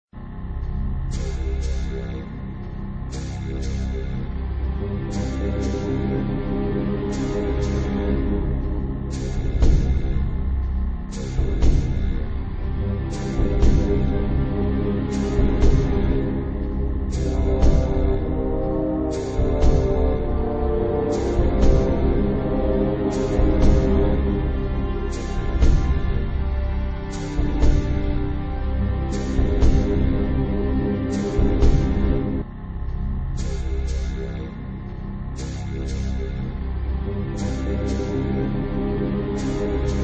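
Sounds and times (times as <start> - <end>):
ambient music: 0.0 - 40.0.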